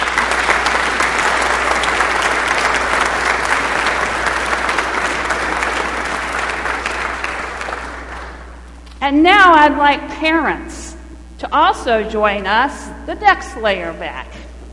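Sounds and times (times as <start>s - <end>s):
audience applause: 0.0s - 8.8s
speech: 9.1s - 10.8s, 11.4s - 14.4s.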